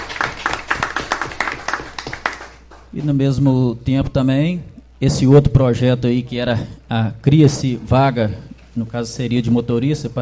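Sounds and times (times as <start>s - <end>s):
small group clapping for civil servants after a vote: 0.0s - 3.2s
speech: 3.0s - 10.1s.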